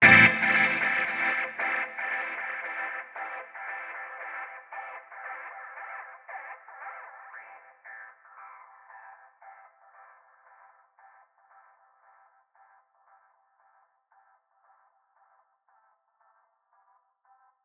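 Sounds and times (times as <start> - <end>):
guitar chords in A: 0.0 - 5.0.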